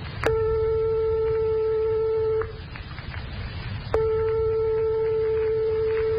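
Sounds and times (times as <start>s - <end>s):
two tones a hundredth of a tone apart: 0.2s - 2.7s, 3.9s - 6.1s.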